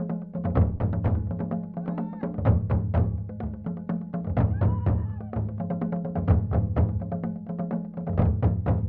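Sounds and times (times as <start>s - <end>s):
ingoma drumming in Rwanda: 0.0s - 8.8s.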